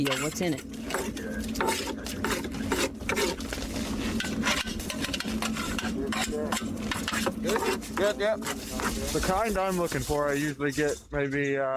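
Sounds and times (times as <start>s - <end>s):
speech: 0.0s - 3.3s, 6.1s - 11.7s
mud scraped out with soup spoons into buckets: 0.0s - 11.1s.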